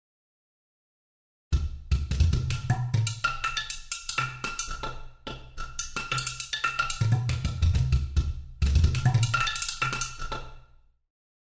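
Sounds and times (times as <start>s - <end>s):
ethnic drums: 1.6s - 10.6s.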